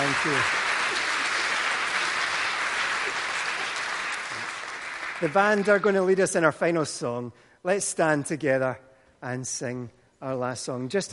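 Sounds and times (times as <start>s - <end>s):
crowd applauding: 0.0s - 6.1s
speech: 0.2s - 0.6s, 5.2s - 11.1s.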